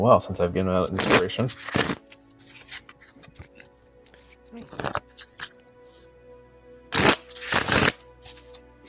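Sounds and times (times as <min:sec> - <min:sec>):
speech: 0:00.0 - 0:02.0
large cumbersome cards shuffled during a tabletop game: 0:00.9 - 0:03.7, 0:07.0 - 0:08.6
card handling sounds: 0:00.9 - 0:05.6, 0:07.0 - 0:08.6.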